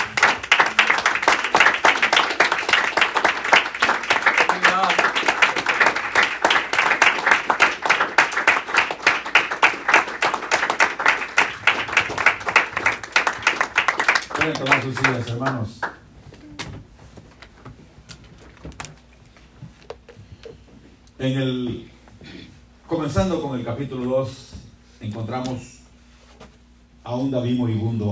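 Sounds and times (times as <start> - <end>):
audience applause: 0.0 - 16.0
speech: 14.6 - 15.8, 21.2 - 21.9, 23.1 - 24.4, 25.1 - 25.7, 27.1 - 28.1.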